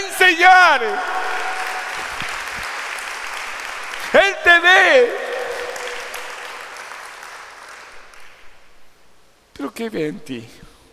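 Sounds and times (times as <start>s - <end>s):
church congregation applauding during a service: 0.0s - 8.7s
speech: 0.3s - 1.2s, 4.2s - 5.4s, 9.6s - 10.7s.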